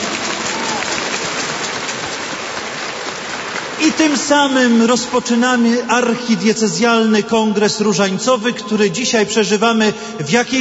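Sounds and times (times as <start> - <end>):
audience applause: 0.0 - 5.2
speech: 3.8 - 10.5.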